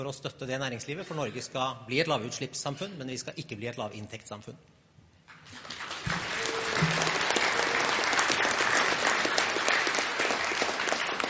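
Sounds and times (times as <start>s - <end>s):
speech: 0.0s - 4.8s
audience applause: 5.4s - 11.2s.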